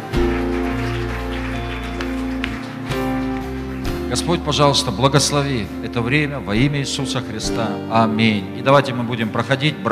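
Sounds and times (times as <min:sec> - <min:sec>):
audience applause: 0:00.0 - 0:04.9
speech: 0:04.1 - 0:09.8.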